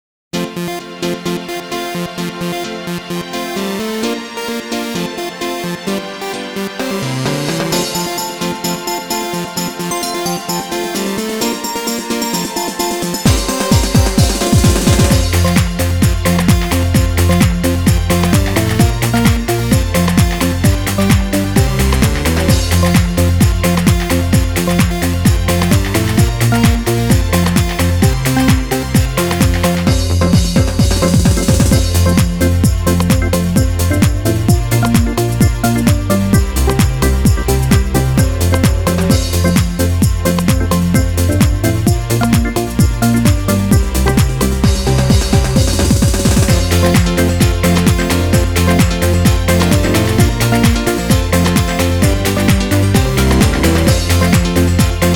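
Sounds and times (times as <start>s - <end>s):
instrumental Christmas song: 0.4s - 55.1s.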